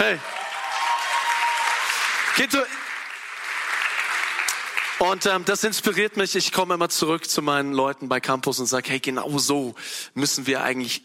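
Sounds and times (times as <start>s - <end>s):
speech: 0.0s - 0.4s, 2.4s - 2.8s, 5.0s - 11.0s
audience applause: 0.0s - 5.4s.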